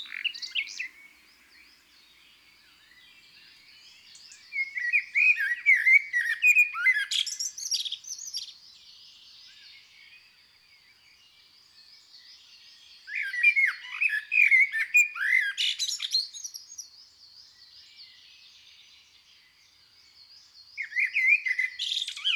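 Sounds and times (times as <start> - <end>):
common blackbird singing in rich warbling bursts: 0.0 - 9.8, 12.2 - 16.9, 20.8 - 22.3.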